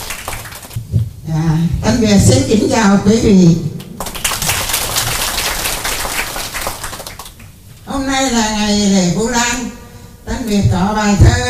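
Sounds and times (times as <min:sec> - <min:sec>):
crowd applause: 0:00.0 - 0:00.8, 0:04.0 - 0:07.5
speech: 0:01.3 - 0:03.7, 0:08.2 - 0:09.4, 0:10.5 - 0:11.4.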